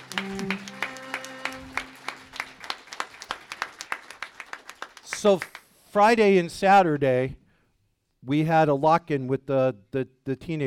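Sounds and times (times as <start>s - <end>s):
round of applause: 0.0s - 5.7s
speech: 5.2s - 7.4s, 8.2s - 10.6s.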